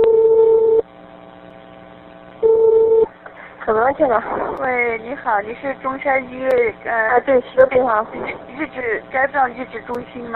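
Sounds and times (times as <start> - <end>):
telephone dialing tones before a call: 0.0 - 0.8, 2.4 - 3.1
faint telephone line hum: 0.0 - 10.3
speech: 3.7 - 10.3.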